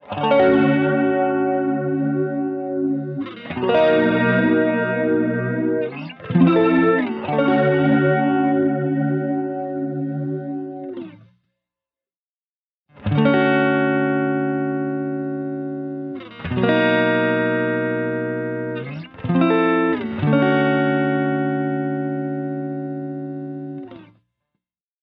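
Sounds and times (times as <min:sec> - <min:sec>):
guitar: 0:00.0 - 0:11.5, 0:12.9 - 0:24.3.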